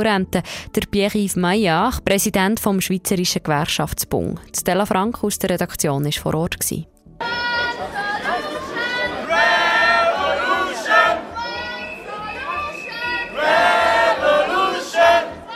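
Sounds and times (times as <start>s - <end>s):
speech: 0.0s - 8.0s
people shouting at a street demonstration: 7.2s - 15.5s
people whistling at a street demonstration: 11.4s - 13.8s.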